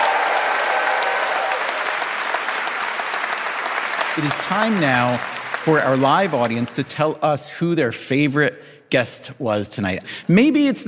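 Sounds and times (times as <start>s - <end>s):
live audience applause: 0.0s - 7.2s
speech: 4.2s - 10.8s.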